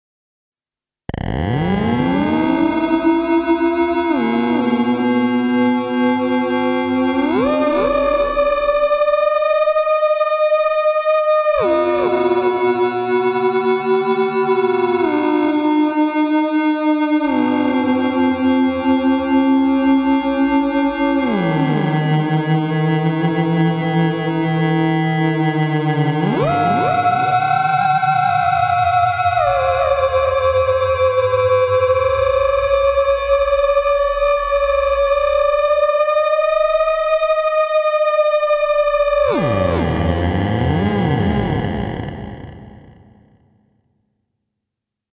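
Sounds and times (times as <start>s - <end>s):
theremin through ring modulator: 1.1s - 43.1s.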